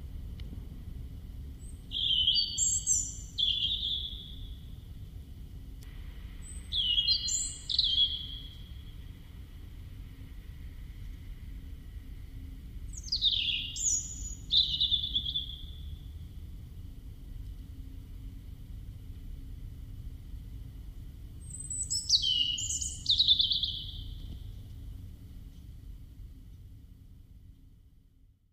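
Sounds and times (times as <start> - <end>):
low background rumble: 0.0 - 28.5
soft background hiss: 0.0 - 28.5
European robin singing high thin whistles: 1.9 - 4.4, 6.4 - 8.8, 12.9 - 15.8, 21.5 - 24.2.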